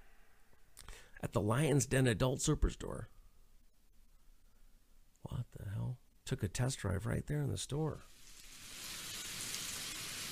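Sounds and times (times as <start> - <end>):
speech: 1.2 - 3.2, 6.3 - 8.2
rain sound effect, dense hiss of falling rain: 8.1 - 10.2.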